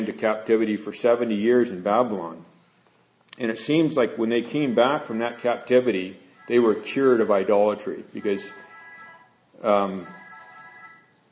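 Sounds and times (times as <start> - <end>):
speech: 0.0 - 2.5, 3.4 - 8.7, 9.6 - 10.2
mobile phone ringtone: 8.2 - 11.2.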